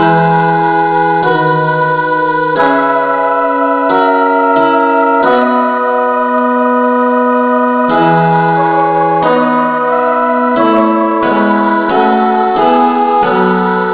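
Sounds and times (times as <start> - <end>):
instrumental music in the key of E: 0.0 - 13.9.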